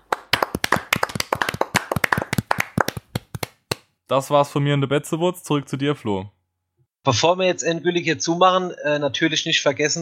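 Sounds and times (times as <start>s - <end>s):
small group clapping hands in applause: 0.0s - 3.9s
speech: 4.1s - 6.4s, 7.0s - 10.0s.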